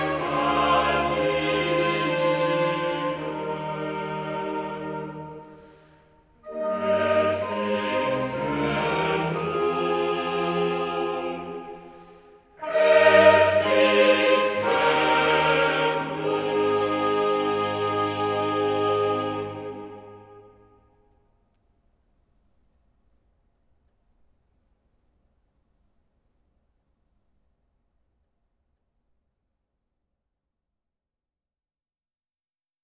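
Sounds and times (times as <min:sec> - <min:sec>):
choral cantata: 0:00.0 - 0:20.8.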